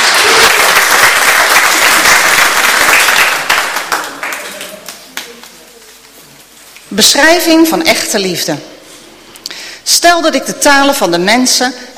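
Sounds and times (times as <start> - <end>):
audience applause: 0.0 - 5.9
speech: 7.0 - 8.8, 9.9 - 11.9.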